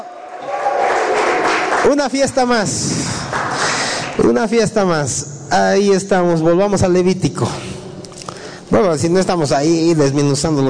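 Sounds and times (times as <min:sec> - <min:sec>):
shouts of joy: 0:00.0 - 0:01.7
audience applause: 0:00.0 - 0:04.2
speech: 0:01.8 - 0:03.4, 0:04.2 - 0:07.7, 0:08.7 - 0:10.6.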